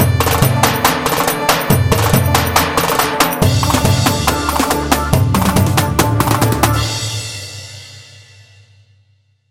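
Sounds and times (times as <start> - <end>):
ciftetelli rhythm: 0.0 - 7.3.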